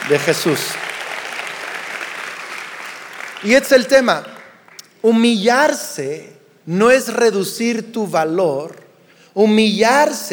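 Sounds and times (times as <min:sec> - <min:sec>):
audience applause: 0:00.0 - 0:04.8
speech: 0:00.1 - 0:00.9, 0:03.4 - 0:04.3, 0:05.0 - 0:08.8, 0:09.4 - 0:10.3.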